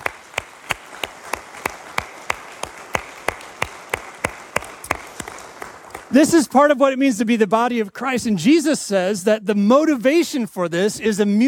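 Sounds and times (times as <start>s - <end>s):
audience applause: 0.0s - 6.4s
speech: 6.1s - 11.4s.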